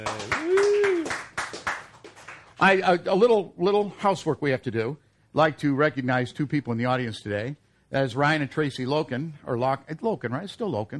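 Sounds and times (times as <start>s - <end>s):
audience applause for an executive chef at an event: 0.0s - 2.6s
speech: 2.6s - 10.9s.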